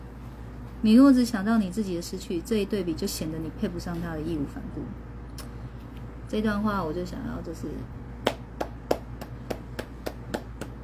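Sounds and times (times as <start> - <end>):
speech: 0.8 - 5.1, 6.3 - 8.0
hands clapping: 8.2 - 10.8.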